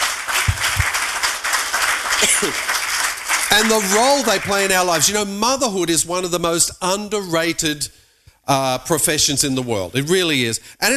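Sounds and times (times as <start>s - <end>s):
audience clapping: 0.0s - 5.4s
speech: 2.4s - 2.8s, 3.6s - 10.9s.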